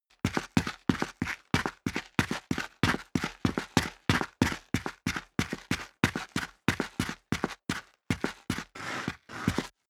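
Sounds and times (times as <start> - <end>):
boots running on gritty concrete: 0.3 - 9.7.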